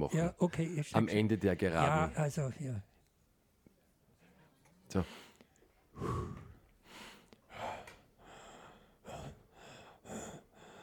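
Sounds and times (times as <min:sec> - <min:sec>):
speech: 0:00.0 - 0:02.9, 0:04.9 - 0:05.2
heavy puffing breath: 0:06.0 - 0:10.8.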